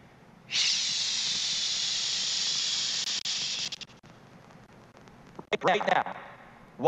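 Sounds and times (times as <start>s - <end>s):
simulated tinnitus hiss in ear: 0.5s - 4.0s
speech: 5.6s - 6.2s.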